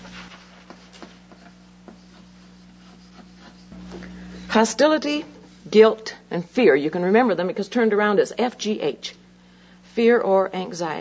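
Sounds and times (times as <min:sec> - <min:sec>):
pen scratching on paper writing notes: 0:01.4 - 0:03.8
speech: 0:04.5 - 0:09.2, 0:10.0 - 0:11.0.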